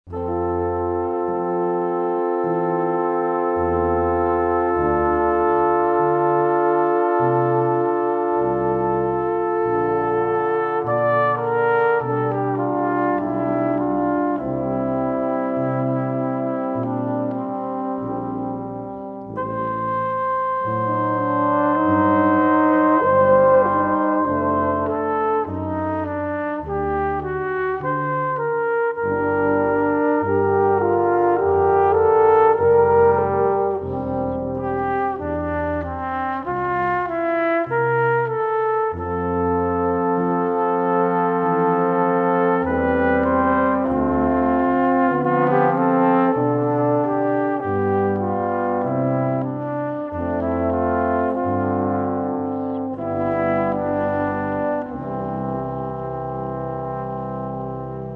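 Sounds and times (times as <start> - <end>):
brass instruments: 0.0 - 58.1.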